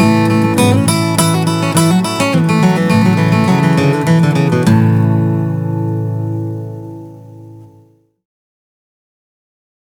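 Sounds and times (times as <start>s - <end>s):
fast bluegrass tune: 0.0s - 6.6s.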